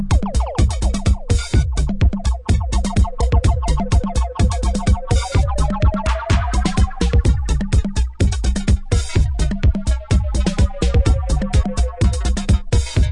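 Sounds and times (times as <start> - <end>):
broken hi-hat machine: 0.1 - 12.9.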